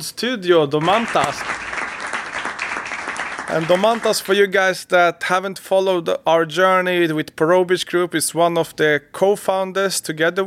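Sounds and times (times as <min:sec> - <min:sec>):
speech: 0:00.0 - 0:01.6, 0:03.5 - 0:10.4
audience applause: 0:00.8 - 0:04.4.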